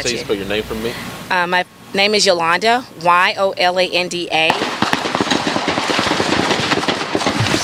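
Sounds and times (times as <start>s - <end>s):
speech: 0.0s - 4.7s
constant noisy background: 0.0s - 7.6s
gunshots from a drive-by shooting across a street in Memphis: 4.5s - 7.6s.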